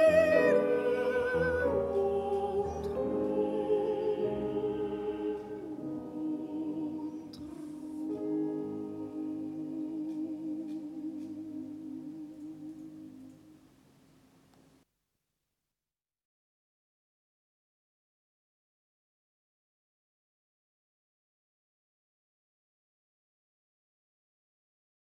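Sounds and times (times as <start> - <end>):
soprano singing: 0.0 - 13.6.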